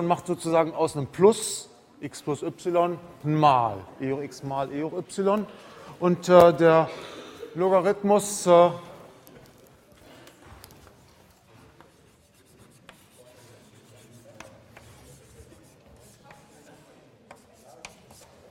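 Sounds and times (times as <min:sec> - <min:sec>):
speech: 0:00.0 - 0:08.9
writing on a board during a maths lecture: 0:10.7 - 0:18.5.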